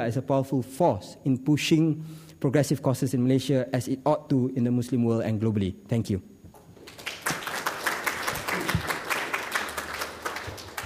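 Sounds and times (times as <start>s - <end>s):
speech: 0.0s - 6.3s
audience applause: 6.8s - 10.8s.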